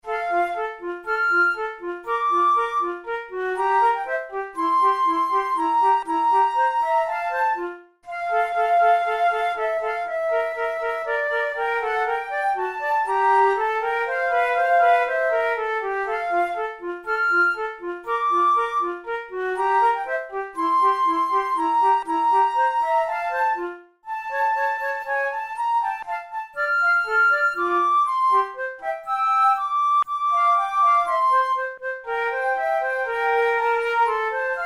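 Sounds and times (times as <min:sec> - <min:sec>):
flute method exercise: 0:00.0 - 0:34.6.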